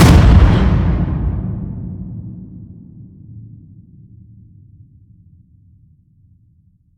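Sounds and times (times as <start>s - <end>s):
cinematic metal crash hit: 0.0s - 4.4s.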